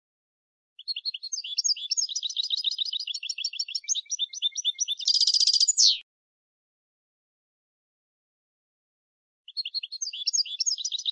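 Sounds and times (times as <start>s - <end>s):
European goldfinch Carduelis carduelis rapid bright chirps: 0.8s - 6.0s, 9.5s - 11.0s.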